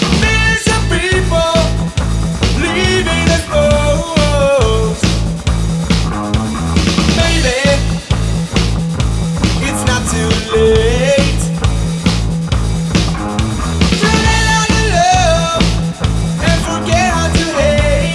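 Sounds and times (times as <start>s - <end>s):
rock guitar backing track: 0.0s - 18.1s
person singing: 0.1s - 5.2s, 7.1s - 8.1s, 9.6s - 11.6s, 13.9s - 18.1s.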